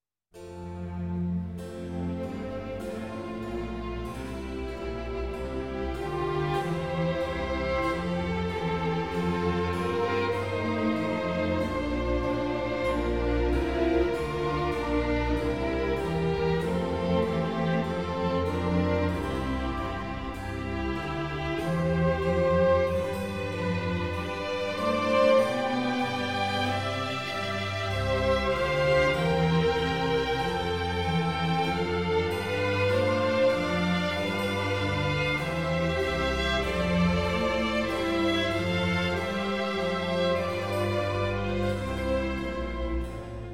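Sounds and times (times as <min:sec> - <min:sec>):
slow concerto grosso movement in A minor: 0:00.4 - 0:43.5.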